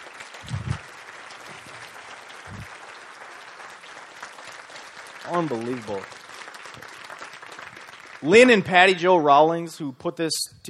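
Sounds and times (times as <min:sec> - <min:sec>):
crowd applause: 0:00.0 - 0:08.9
low thumps: 0:00.4 - 0:00.8
speech: 0:05.3 - 0:06.2, 0:08.2 - 0:10.6.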